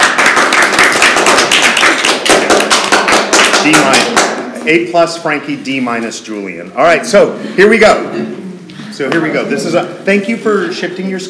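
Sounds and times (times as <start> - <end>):
students applauding: 0.0 - 4.6
speech: 3.6 - 4.1, 4.7 - 8.4, 9.0 - 11.2.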